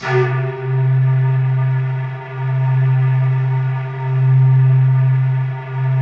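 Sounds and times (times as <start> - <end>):
analog sequencer: 0.0 - 6.0.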